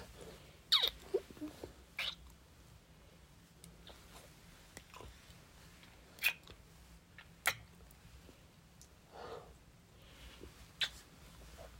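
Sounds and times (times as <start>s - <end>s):
kissing: 0.7s - 1.2s, 2.0s - 2.4s, 6.2s - 6.6s, 7.2s - 7.7s, 10.8s - 11.1s.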